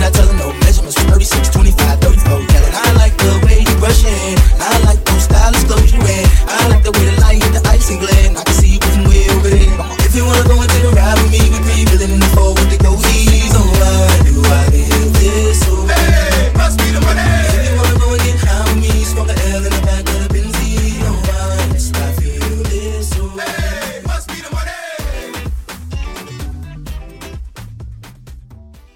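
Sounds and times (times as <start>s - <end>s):
afrobeat drums: 0.0s - 28.9s.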